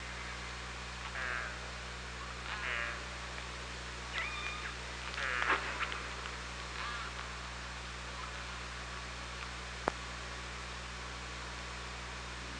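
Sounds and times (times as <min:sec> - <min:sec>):
killer whale pulsed calls: 0:00.0 - 0:07.5
low hum: 0:00.0 - 0:12.5.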